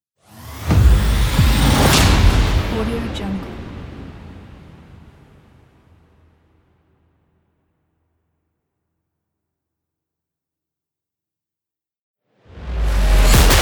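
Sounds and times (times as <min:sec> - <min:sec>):
trailer tech hits: 0:00.4 - 0:03.9, 0:12.6 - 0:13.6.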